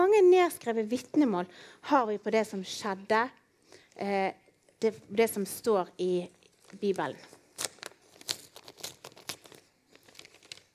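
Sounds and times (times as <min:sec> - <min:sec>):
speech: 0:00.2 - 0:03.4, 0:04.0 - 0:07.4
paper envelope torn open: 0:06.6 - 0:10.7.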